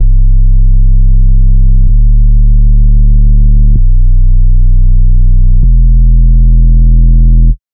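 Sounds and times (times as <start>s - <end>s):
bass: 0.0s - 7.7s.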